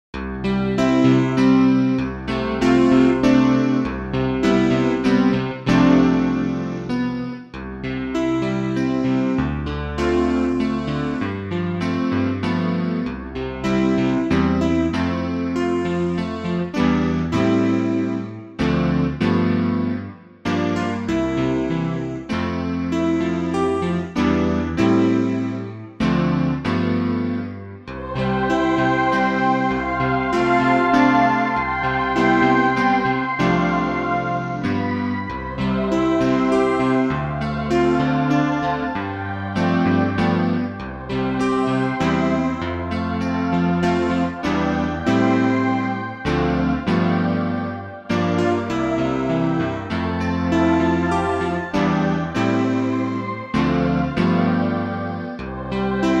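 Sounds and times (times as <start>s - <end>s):
instrumental backing track without melody: 0.2s - 56.1s.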